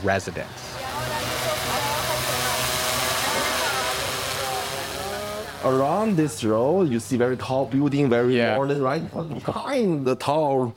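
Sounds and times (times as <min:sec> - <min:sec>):
speech: 0:00.0 - 0:00.8, 0:05.6 - 0:10.7
delivery drones carrying packages and food humming overhead: 0:00.0 - 0:08.4.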